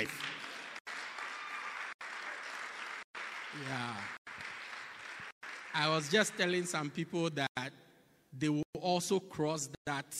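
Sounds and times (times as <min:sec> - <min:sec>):
speech: 0:00.0 - 0:00.2, 0:03.5 - 0:04.2, 0:05.8 - 0:10.1
audience clapping: 0:00.0 - 0:06.9.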